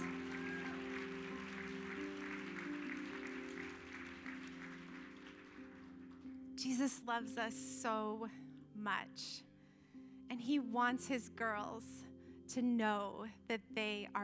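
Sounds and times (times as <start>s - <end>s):
audience applause: 0.0s - 6.2s
speech: 6.6s - 9.5s, 10.3s - 14.2s.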